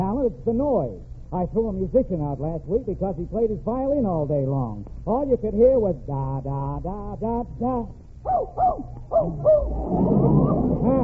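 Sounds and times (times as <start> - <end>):
speech: 0.2 - 11.0
dog barking: 8.3 - 9.7.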